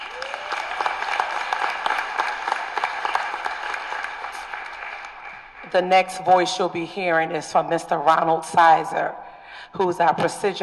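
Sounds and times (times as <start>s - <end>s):
crowd clapping: 0.0s - 5.9s
speech: 5.7s - 10.6s.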